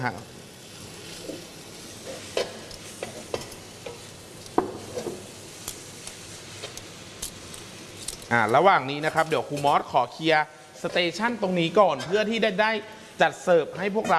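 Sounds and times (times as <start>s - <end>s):
speech: 0.0s - 0.4s, 8.3s - 14.1s
bean sprouts and garlic chives stir-frying for pad thai: 0.0s - 14.1s.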